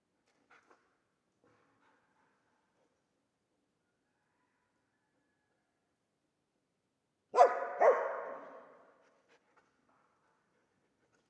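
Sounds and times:
dog barking: 0:07.3 - 0:08.9.

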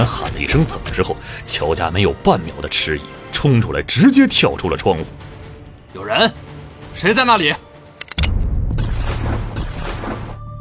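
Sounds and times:
speech: 0:00.0 - 0:05.3, 0:05.9 - 0:07.7
gunshots: 0:08.7 - 0:10.4.

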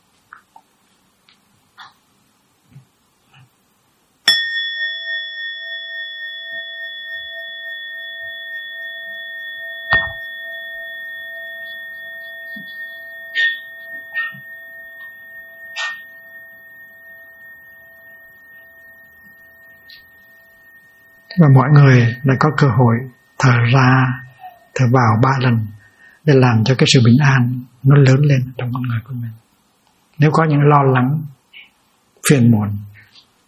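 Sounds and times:
meditation bell struck: 0:04.2 - 0:29.4
speech: 0:21.4 - 0:29.4, 0:30.2 - 0:31.4, 0:32.3 - 0:32.9.

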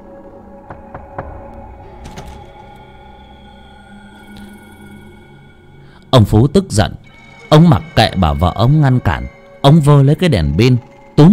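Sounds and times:
steady low hum: 0:00.0 - 0:08.0
someone knocking on a house door at night: 0:00.6 - 0:02.6
speech: 0:06.1 - 0:11.3.

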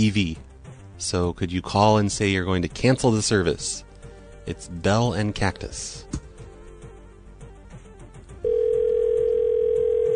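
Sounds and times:
speech: 0:00.0 - 0:03.9, 0:04.5 - 0:06.2
telephone busy signal: 0:08.4 - 0:10.1.

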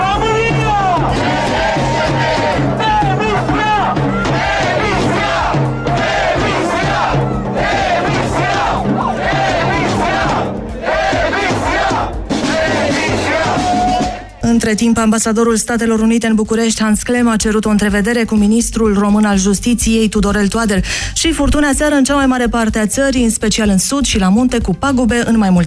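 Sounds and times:
protest crowd chanting: 0:01.0 - 0:14.4
speech: 0:14.5 - 0:25.6.

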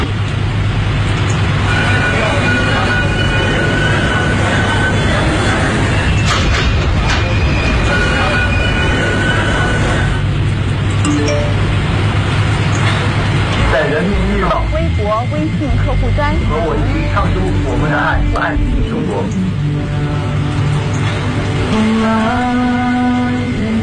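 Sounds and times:
Beijing subway train running: 0:00.0 - 0:23.8.

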